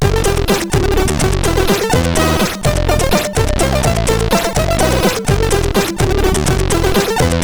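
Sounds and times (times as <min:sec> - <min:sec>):
SID CSG8580R5 chip music: 0:00.0 - 0:07.4.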